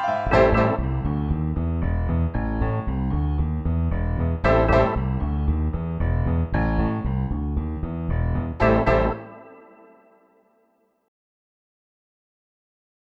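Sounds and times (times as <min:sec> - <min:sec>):
boogie blues in A minor: 0:00.0 - 0:09.5.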